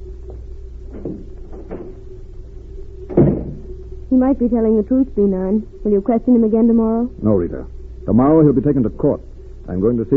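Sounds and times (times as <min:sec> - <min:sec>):
door opening and closing: 0:00.9 - 0:02.3, 0:03.0 - 0:03.8
speech: 0:04.2 - 0:10.1.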